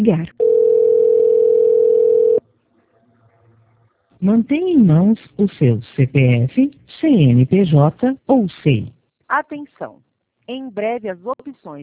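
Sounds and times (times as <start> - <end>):
speech: 0.0 - 0.4, 4.2 - 11.8
telephone busy tone: 0.4 - 2.4.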